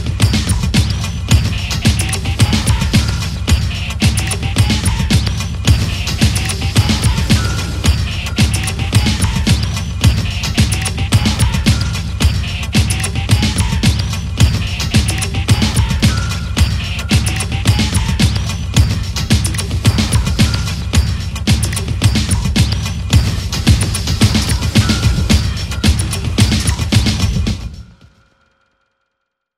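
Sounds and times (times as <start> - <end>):
drum machine beat: 0.0 - 28.2.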